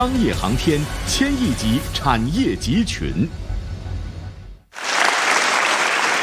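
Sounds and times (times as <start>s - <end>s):
speech: 0.0s - 3.4s
audience applause: 4.7s - 6.2s.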